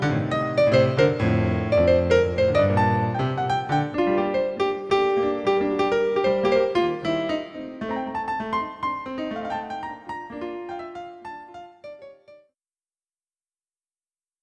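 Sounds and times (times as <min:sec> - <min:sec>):
jazzy interlude: 0:00.0 - 0:11.0.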